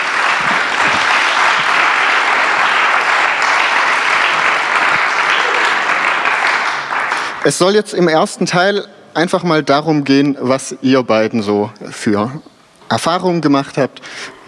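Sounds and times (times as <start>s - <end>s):
audience applause: 0.0s - 7.6s
speech: 7.4s - 14.4s.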